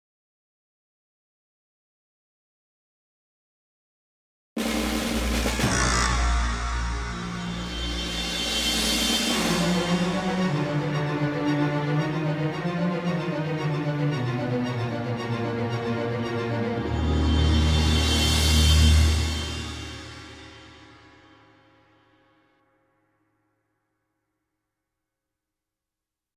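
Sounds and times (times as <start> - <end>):
shrieking horror strings: 5.1 - 20.6.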